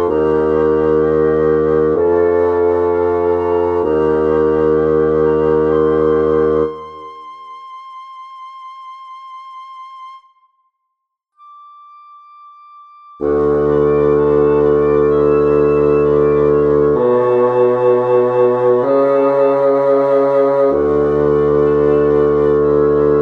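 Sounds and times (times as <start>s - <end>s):
contrabass flute: 0.0s - 10.8s, 11.4s - 23.1s.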